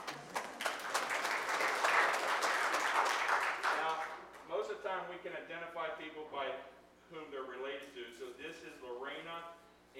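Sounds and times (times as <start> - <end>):
audience applause: 0.0 - 4.0
speech: 5.0 - 9.9.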